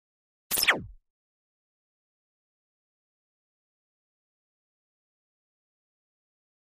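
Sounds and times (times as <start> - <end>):
shimmering skipping laser effect: 0.5 - 1.0.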